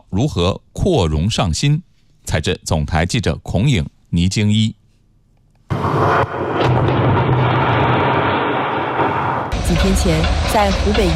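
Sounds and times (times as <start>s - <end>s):
speech: 0.1s - 4.8s, 9.8s - 11.1s
construction blasting explosion at excavation site: 5.7s - 11.1s.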